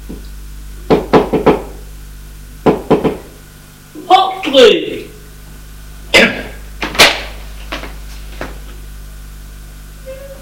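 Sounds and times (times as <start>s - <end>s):
speech: 0.1s - 0.4s, 4.6s - 5.1s
knocking on a door: 0.9s - 1.8s, 2.6s - 3.3s.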